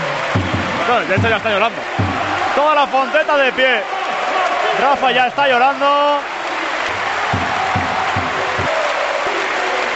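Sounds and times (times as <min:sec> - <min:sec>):
low rhythmic thumps: 0:00.0 - 0:03.0, 0:06.9 - 0:08.9
large indoor arena crowd applauding: 0:00.0 - 0:09.9
speech: 0:00.4 - 0:04.0, 0:04.7 - 0:06.4.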